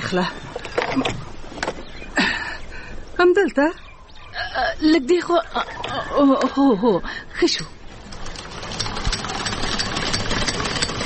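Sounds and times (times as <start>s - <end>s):
speech: 0.1s - 0.4s, 1.0s - 1.3s, 3.2s - 3.8s, 4.4s - 7.8s
sewing machine bought in Gujarat running for home tailoring: 8.0s - 11.0s.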